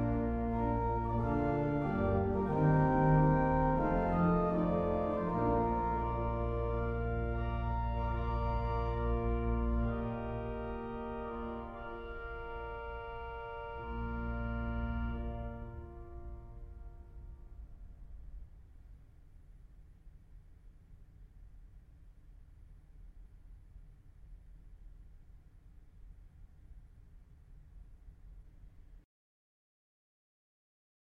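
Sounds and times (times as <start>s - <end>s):
music piece: 0.0s - 17.8s.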